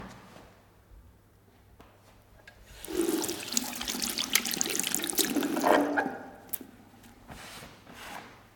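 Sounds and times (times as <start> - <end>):
washbasin sounds: 2.6 - 7.3.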